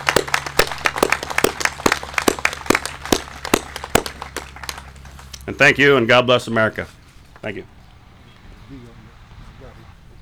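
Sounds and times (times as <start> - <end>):
audience applause: 0.0 - 5.4
speech: 5.5 - 7.7, 8.7 - 9.0.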